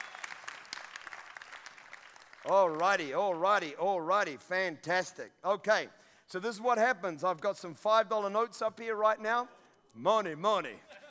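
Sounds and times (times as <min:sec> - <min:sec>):
crowd applauding for the team: 0:00.0 - 0:02.8
speech: 0:02.4 - 0:10.9.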